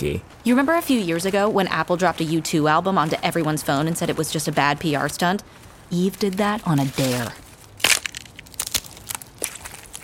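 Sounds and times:
speech: 0.0s - 7.4s
crab legs being cracked open: 7.2s - 10.0s.

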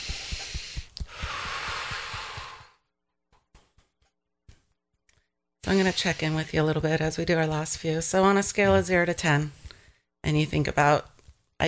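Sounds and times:
deep breath during an Emotional Freedom Technique session: 0.0s - 2.9s
speech: 5.7s - 9.6s, 10.2s - 11.6s.

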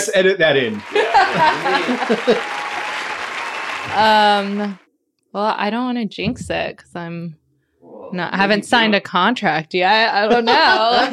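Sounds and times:
speech: 0.0s - 2.6s, 3.8s - 11.1s
small group clapping: 0.0s - 4.8s
laughter: 0.5s - 3.1s, 10.1s - 11.1s.

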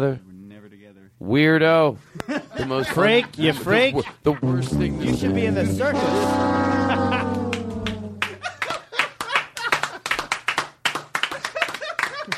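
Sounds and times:
speech: 0.0s - 0.3s, 1.2s - 6.6s
laughter: 2.0s - 10.2s, 11.3s - 12.3s
droning vocal tone: 4.4s - 8.4s
scattered applause from a small group: 7.1s - 12.3s.

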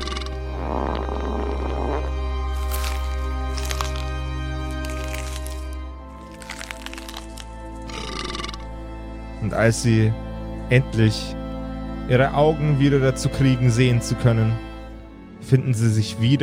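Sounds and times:
farting: 0.0s - 4.0s, 7.9s - 8.6s
burping: 0.0s - 4.1s, 7.9s - 8.7s
lip smacking: 0.6s - 8.6s
teeth chewing: 0.8s - 8.7s
speech: 9.6s - 11.4s, 12.1s - 14.7s, 15.5s - 16.4s.

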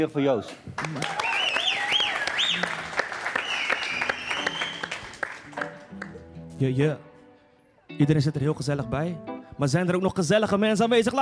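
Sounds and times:
speech: 0.0s - 1.4s, 6.6s - 7.1s, 8.0s - 11.2s
audience applause: 0.8s - 6.2s.

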